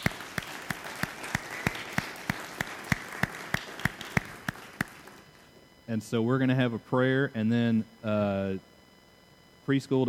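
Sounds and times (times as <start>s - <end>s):
audience applause for children: 0.0s - 5.3s
speech: 5.9s - 8.7s, 9.7s - 10.0s.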